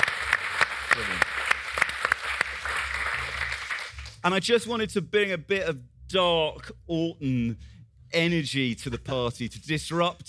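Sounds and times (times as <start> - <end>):
small group clapping: 0.0 - 4.2
speech: 4.2 - 10.2.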